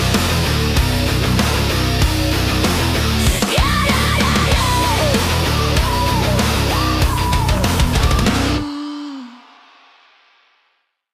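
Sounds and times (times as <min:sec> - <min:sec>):
reggae music: 0:00.0 - 0:08.6.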